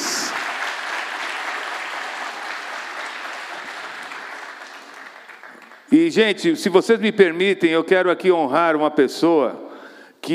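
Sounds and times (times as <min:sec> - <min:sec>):
audience applause: 0:00.0 - 0:05.9
speech: 0:05.9 - 0:09.7.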